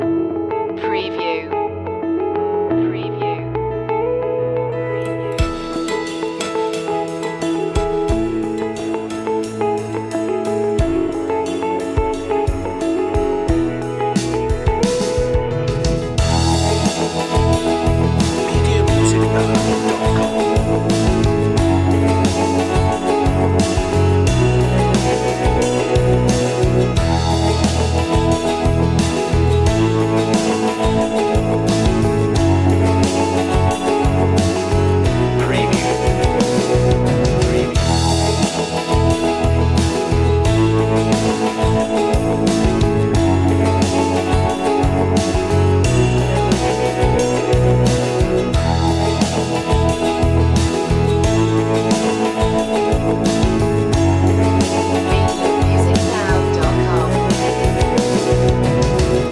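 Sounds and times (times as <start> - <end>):
acoustic music: 0.0 - 59.2.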